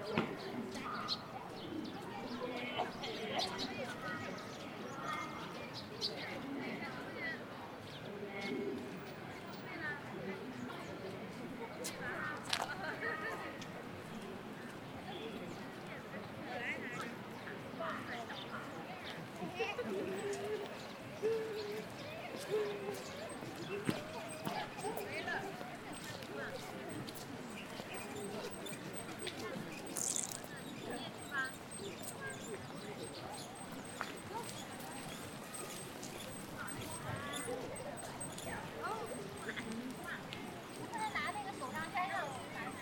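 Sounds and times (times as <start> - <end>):
murmur of many voices at Ditan in Beijing: 0.0 - 42.7.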